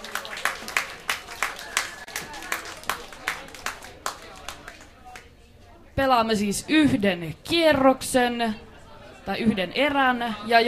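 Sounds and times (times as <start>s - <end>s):
audience applause at a bar club night: 0.0s - 5.3s
speech: 6.0s - 8.7s, 9.3s - 10.6s.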